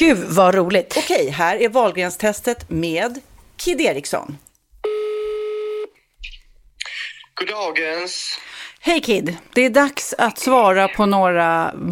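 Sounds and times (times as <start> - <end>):
speech: 0.0 - 4.5, 7.4 - 11.9
telephone call being dialled, steady electronic tone: 4.8 - 5.9.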